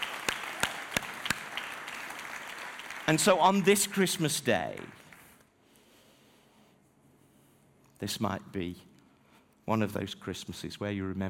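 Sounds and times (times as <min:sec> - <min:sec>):
audience applause: 0:00.0 - 0:04.0
speech: 0:03.1 - 0:05.0, 0:08.0 - 0:08.9, 0:09.7 - 0:11.2.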